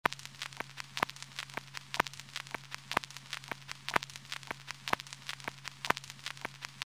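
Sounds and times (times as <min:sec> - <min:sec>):
scratching: 0:00.0 - 0:06.9.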